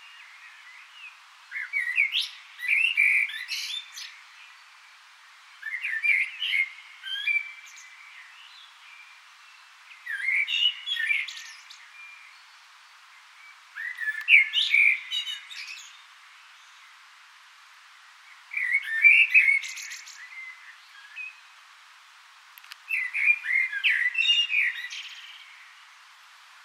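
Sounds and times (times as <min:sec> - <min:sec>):
common blackbird song: 0:00.0 - 0:17.1, 0:18.0 - 0:21.6, 0:22.6 - 0:26.6.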